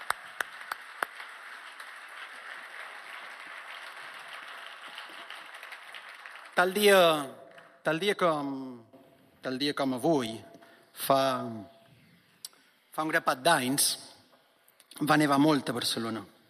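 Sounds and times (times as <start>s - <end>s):
audience applause: 0.0s - 7.7s
speech: 6.6s - 11.7s, 13.0s - 14.1s, 14.9s - 16.3s.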